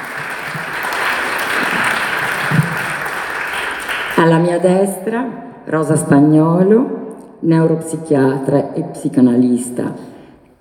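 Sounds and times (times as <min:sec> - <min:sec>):
audience applause: 0:00.0 - 0:04.3
speech: 0:04.6 - 0:10.1.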